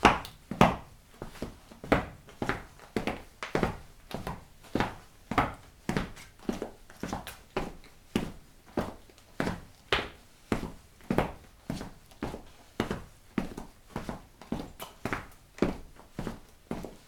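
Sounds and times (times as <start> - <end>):
loud footsteps on tiles: 0.0 - 17.0.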